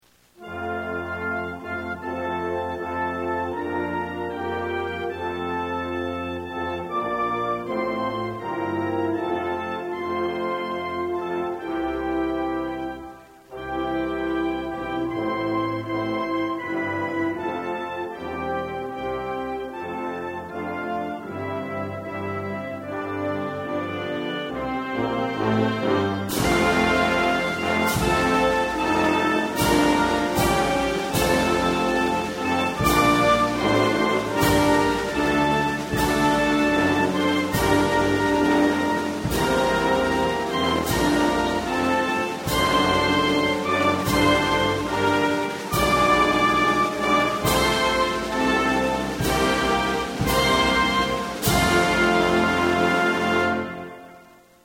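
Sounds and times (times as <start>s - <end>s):
national anthem: 0.0s - 54.6s.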